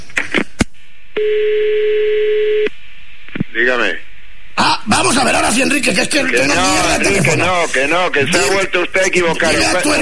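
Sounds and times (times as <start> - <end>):
speech: 1.2 - 1.5, 3.6 - 4.0, 4.9 - 9.9
steady loud electronic telephone tone: 1.2 - 2.7.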